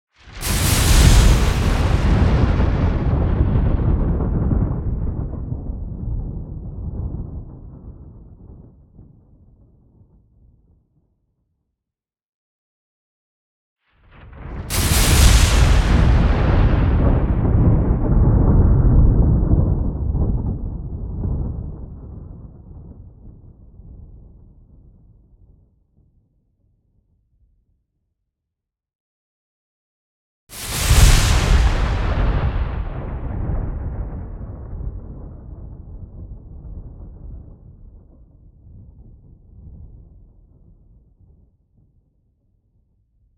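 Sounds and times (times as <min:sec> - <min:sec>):
artificial whipping thunder strikes with low-frequency sweetener: 0:00.3 - 0:08.5, 0:14.1 - 0:22.8, 0:30.5 - 0:38.1.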